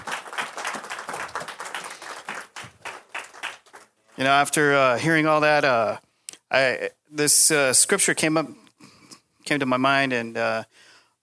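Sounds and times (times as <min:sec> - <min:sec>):
applause: 0:00.0 - 0:04.0
speech: 0:04.2 - 0:08.6, 0:09.5 - 0:11.2.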